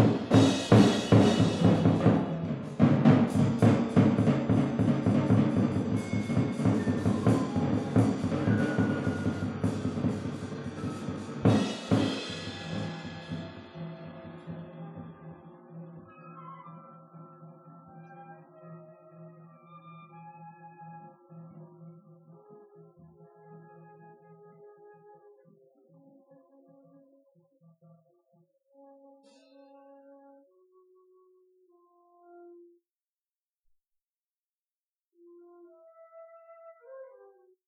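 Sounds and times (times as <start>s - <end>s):
group musical improvisation: 0.0s - 21.6s.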